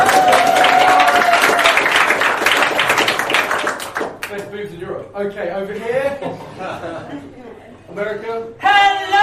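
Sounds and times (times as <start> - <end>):
crowd applauding: 0.0 - 4.4
speech: 5.0 - 9.2
laughter: 5.8 - 7.9.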